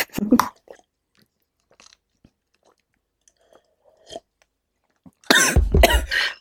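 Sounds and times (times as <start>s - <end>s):
person coughing after choking on a drink: 5.3s - 6.3s.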